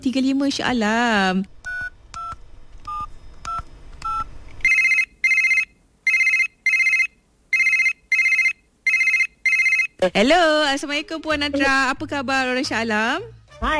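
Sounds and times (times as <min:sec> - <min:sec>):
speech: 0:00.0 - 0:01.6, 0:10.0 - 0:13.7
telephone keypad dialing beeps: 0:01.6 - 0:09.9.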